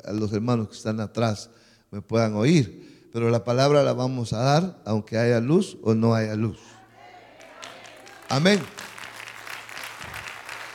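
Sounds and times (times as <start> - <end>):
speech: 0.0 - 6.8, 8.3 - 8.9
audience applause: 7.4 - 10.7.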